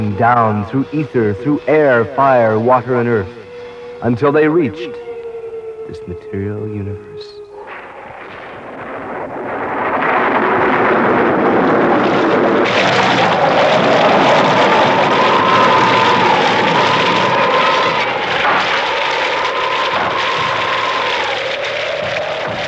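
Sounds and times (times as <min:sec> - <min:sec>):
howling wind: 0:00.0 - 0:22.6
speech: 0:00.2 - 0:03.4, 0:04.0 - 0:05.0, 0:05.9 - 0:07.4.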